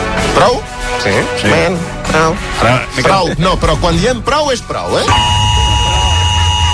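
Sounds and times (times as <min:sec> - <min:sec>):
speech: 0:00.4 - 0:05.4
loud electronic alarm buzzing: 0:05.1 - 0:06.7.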